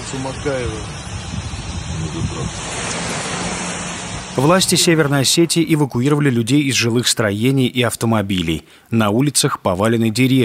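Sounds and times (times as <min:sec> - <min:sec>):
heavy rain: 0:00.0 - 0:05.4
floodwater flowing down street: 0:00.0 - 0:10.4
speech: 0:00.1 - 0:01.0, 0:01.9 - 0:02.9, 0:04.4 - 0:10.4.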